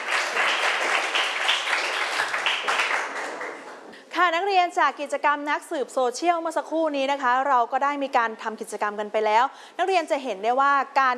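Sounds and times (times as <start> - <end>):
students applauding a classmate: 0.0 - 3.9
speech: 4.3 - 11.1.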